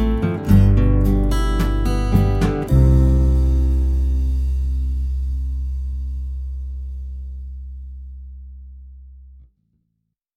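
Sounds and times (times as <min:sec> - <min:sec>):
acoustic ocean underscore music: 0:00.0 - 0:06.9.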